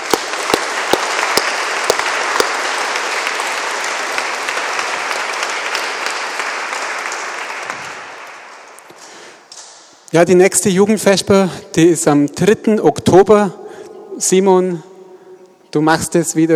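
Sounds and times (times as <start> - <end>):
audience applause: 0.0 - 8.9
speech: 10.1 - 13.6, 14.2 - 14.9, 15.7 - 16.5.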